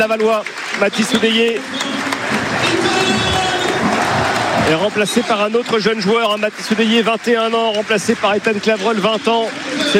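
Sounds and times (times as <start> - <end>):
speech: 0.0 - 3.3, 4.7 - 9.9
stadium crowd applauding a footballer being substituted at Le Basser: 0.0 - 9.9.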